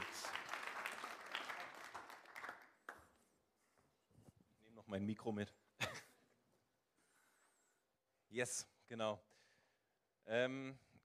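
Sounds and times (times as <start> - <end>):
audience applause: 0.0 - 3.1
speech: 4.9 - 5.6, 8.3 - 9.4, 10.3 - 10.9.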